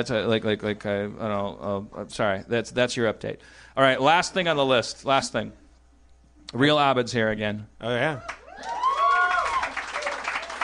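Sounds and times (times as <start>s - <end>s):
speech: 0.0s - 5.6s, 6.5s - 8.8s
audience applause: 8.3s - 10.6s.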